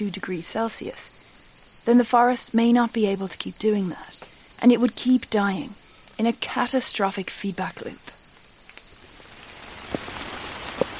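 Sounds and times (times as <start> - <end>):
speech: 0.0 - 1.2, 1.8 - 8.2
rain in the Amazon forest: 0.0 - 10.9
louder sharper raindrops landing: 8.3 - 10.9.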